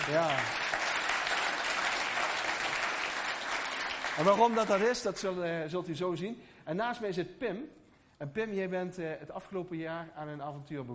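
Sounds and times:
audience applause: 0.0 - 5.2
speech: 0.1 - 0.8, 4.2 - 10.9.

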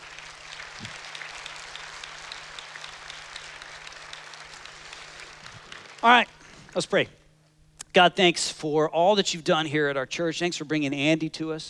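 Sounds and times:
audience applauding: 0.0 - 6.9
speech: 6.0 - 7.2, 7.9 - 11.6.

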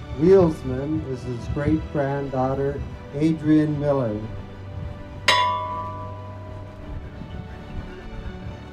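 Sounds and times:
speech: 0.2 - 4.4
memorial bell tolling: 5.3 - 7.2.

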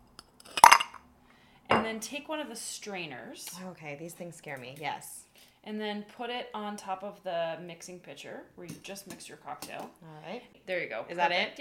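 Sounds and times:
ice cube dropped into a glass: 0.5 - 1.0
speech: 1.9 - 11.6.

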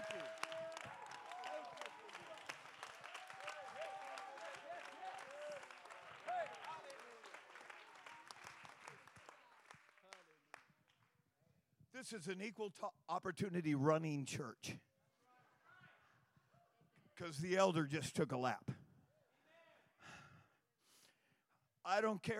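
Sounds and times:
audience clapping hands: 0.0 - 11.1
speech: 12.0 - 14.8, 17.2 - 18.7, 22.0 - 22.3.

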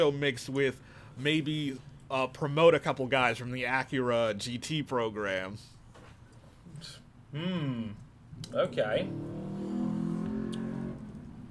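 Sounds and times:
speech: 0.0 - 5.8, 6.8 - 9.6
car driving past a house: 8.9 - 11.4.

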